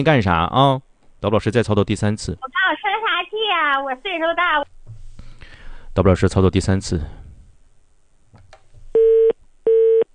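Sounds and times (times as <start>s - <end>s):
speech: 0.0s - 2.9s, 3.5s - 4.7s, 6.0s - 7.2s
phone call failing to connect: 9.0s - 10.1s.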